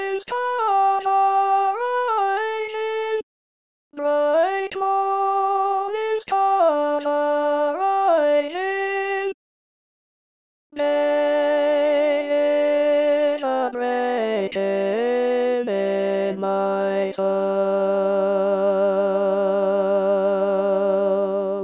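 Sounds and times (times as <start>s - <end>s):
alto voice: 0.0s - 3.2s, 4.0s - 9.4s, 10.8s - 21.6s.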